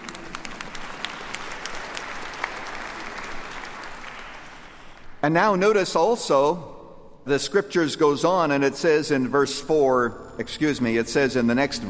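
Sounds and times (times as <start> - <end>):
audience clapping: 0.0 - 5.2
speech: 5.2 - 11.8.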